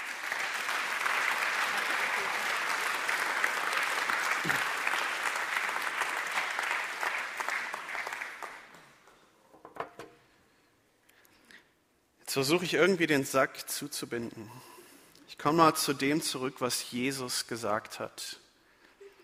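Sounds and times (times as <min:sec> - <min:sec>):
audience applause: 0:00.0 - 0:09.0
speech: 0:12.4 - 0:14.8, 0:15.4 - 0:18.4.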